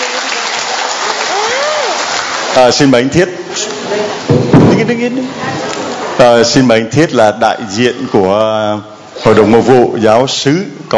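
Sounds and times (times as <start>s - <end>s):
audience applause: 0.0s - 2.8s
speech: 2.6s - 10.9s.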